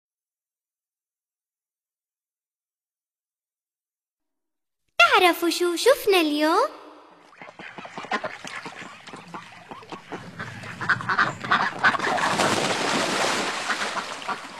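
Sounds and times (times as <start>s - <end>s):
speech: 5.2s - 6.8s
ducks quacking on a pond: 7.2s - 14.5s.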